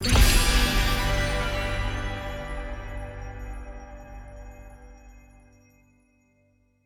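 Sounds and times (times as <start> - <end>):
medium win jingle: 0.0 - 6.5.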